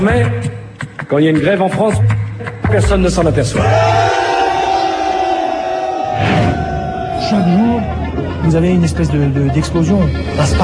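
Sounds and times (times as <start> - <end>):
speech: 0.0 - 4.2, 7.2 - 10.6
protest crowd shouting: 3.6 - 8.4.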